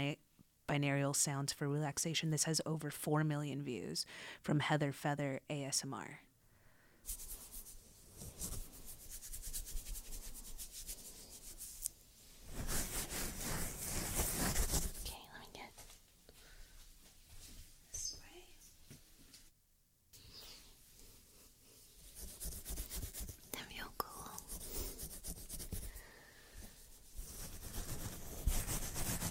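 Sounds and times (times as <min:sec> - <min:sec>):
speech: 0:00.0 - 0:06.3, 0:07.0 - 0:07.3
fingers scratching through hair on a scalp: 0:07.1 - 0:15.2, 0:22.0 - 0:26.0, 0:26.8 - 0:29.3
soft whispering: 0:14.9 - 0:15.9, 0:17.8 - 0:18.8, 0:23.4 - 0:25.2.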